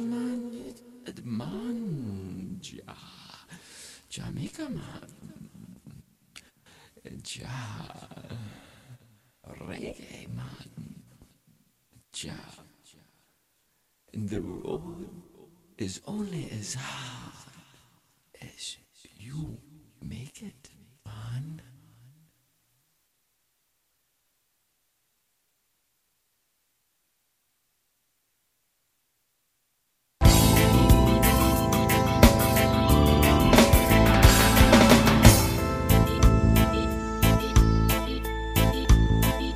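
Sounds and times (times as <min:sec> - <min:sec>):
reggae techno music at a concert: 0:30.2 - 0:39.5.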